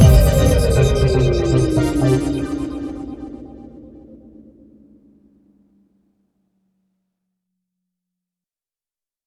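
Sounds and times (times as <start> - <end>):
Korg Radias-R synthesizer note break: 0.0 - 4.5.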